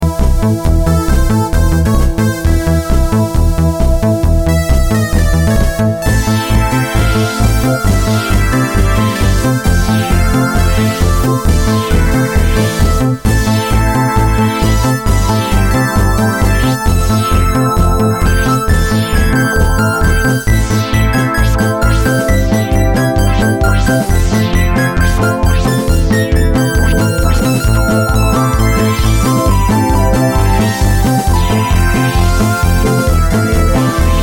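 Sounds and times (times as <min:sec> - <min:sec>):
haunted disco music: 0:00.0 - 0:34.2.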